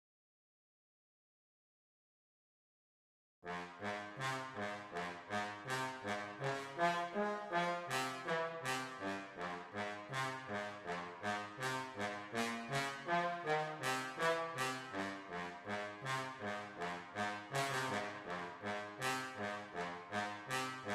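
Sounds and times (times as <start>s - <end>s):
trombone: 3.5s - 20.9s.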